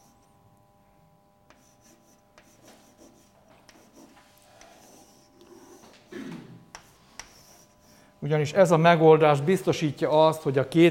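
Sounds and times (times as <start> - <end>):
drawing a cross-section on a board: 1.5 - 6.1, 6.7 - 8.0
speech: 8.2 - 10.8.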